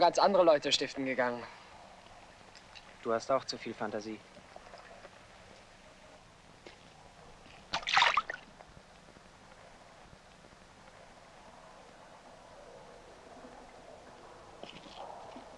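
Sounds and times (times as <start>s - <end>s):
speech: 0.0s - 1.6s, 3.0s - 4.3s
faint watery trickling: 0.0s - 15.5s
fish splashing in water: 7.6s - 8.5s.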